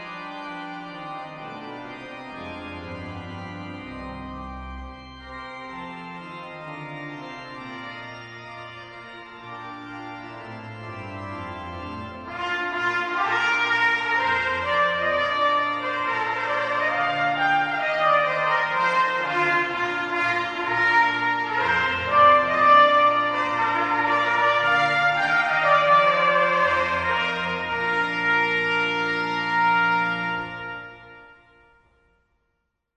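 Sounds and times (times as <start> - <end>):
organ playing: 0.0 - 32.0
trumpet playing: 12.2 - 31.8.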